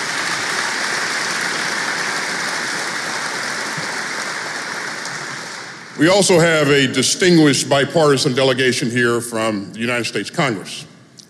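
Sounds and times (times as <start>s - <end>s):
audience applause: 0.0s - 6.9s
speech: 6.0s - 10.9s.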